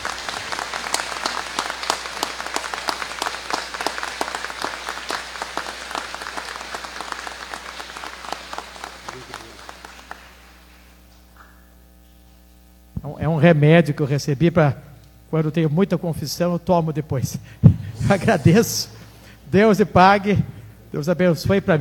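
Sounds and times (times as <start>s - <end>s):
audience applause: 0.0s - 11.0s
speech: 13.4s - 18.9s, 19.5s - 21.7s.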